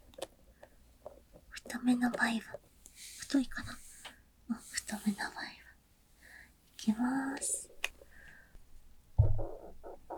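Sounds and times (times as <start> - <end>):
speech: 1.8 - 3.8, 6.8 - 7.7
stomach growling: 9.2 - 10.1.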